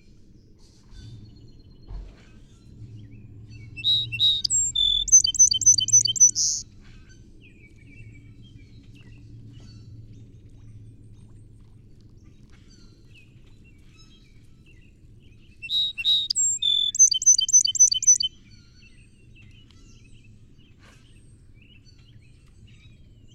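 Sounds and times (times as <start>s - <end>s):
song sparrow singing: 3.6s - 6.6s, 15.6s - 18.3s.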